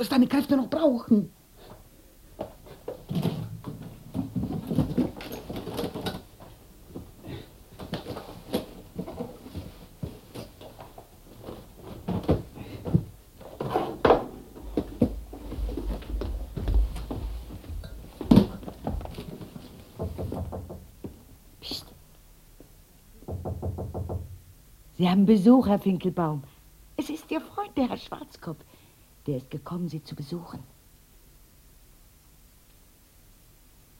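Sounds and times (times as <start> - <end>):
speech: 0.0 - 1.4, 25.0 - 26.5, 27.3 - 28.7, 29.3 - 30.7
soft rustling of items being handled: 1.6 - 21.3
thumps and wooden clacks of packing a suitcase: 2.4 - 21.2.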